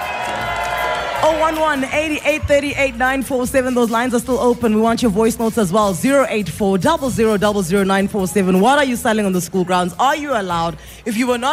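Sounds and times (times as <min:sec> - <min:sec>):
applause and cheering: 0:00.0 - 0:02.5
speech: 0:01.2 - 0:11.5.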